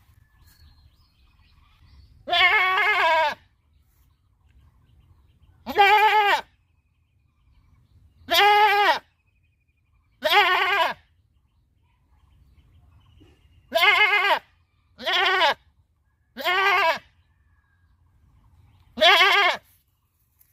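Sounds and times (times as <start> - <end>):
happy goat bleating: 2.2 - 3.4, 5.6 - 6.5, 8.3 - 9.1, 10.2 - 11.0, 13.7 - 15.7, 16.4 - 17.1, 19.0 - 19.8.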